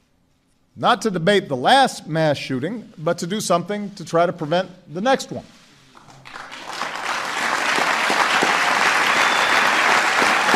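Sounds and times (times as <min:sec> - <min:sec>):
speech: 0:00.8 - 0:05.6
people applauding wildly: 0:06.0 - 0:10.5.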